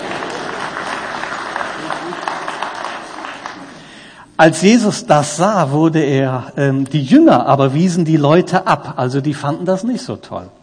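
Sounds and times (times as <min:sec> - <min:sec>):
congregation applauding during a German church service: 0:00.0 - 0:04.2
speech: 0:04.4 - 0:10.6.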